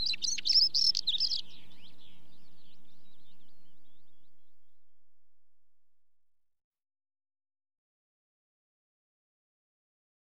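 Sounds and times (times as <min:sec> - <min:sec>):
stonechat singing: 0:00.0 - 0:01.9.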